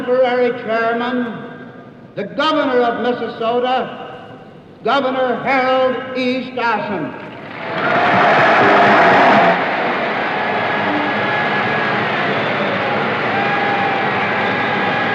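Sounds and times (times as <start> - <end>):
speech: 0.1 - 1.5, 2.2 - 4.0, 4.8 - 8.1
convention delegates applauding and cheering: 7.2 - 15.1.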